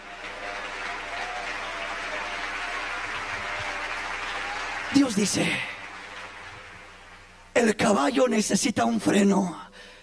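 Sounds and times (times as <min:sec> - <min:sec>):
crowd applauding: 0:00.0 - 0:07.4
speech: 0:04.9 - 0:05.7, 0:07.6 - 0:09.9.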